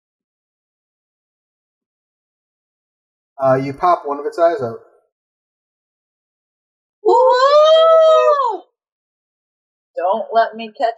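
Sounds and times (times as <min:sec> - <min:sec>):
speech: 0:03.4 - 0:04.9, 0:10.0 - 0:10.9
voice imitating a creature's horrific scream: 0:07.0 - 0:08.6.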